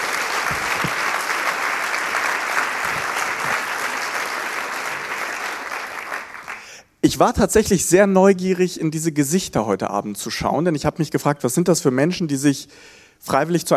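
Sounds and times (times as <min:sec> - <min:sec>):
audience applause: 0:00.0 - 0:06.7
speech: 0:07.0 - 0:13.7.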